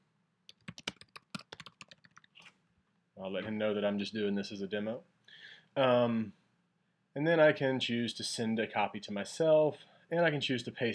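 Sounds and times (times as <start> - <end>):
typing a message on a computer keyboard: 0.5 - 2.5
speech: 3.2 - 5.1, 5.8 - 6.4, 7.2 - 10.9.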